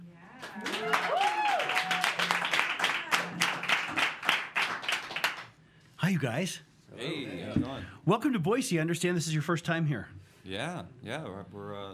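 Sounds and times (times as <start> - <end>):
cheers and whoops: 0.4 - 2.4
audience clapping: 0.4 - 5.6
speech: 6.1 - 11.9.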